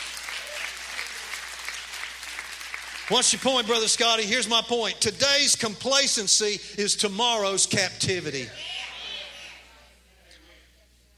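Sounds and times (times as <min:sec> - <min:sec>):
audience clapping: 0:00.0 - 0:04.2
speech: 0:03.1 - 0:08.8.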